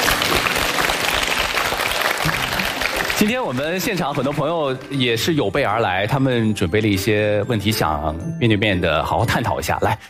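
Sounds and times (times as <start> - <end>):
audience applause: 0.0 - 5.5
speech: 3.2 - 10.0.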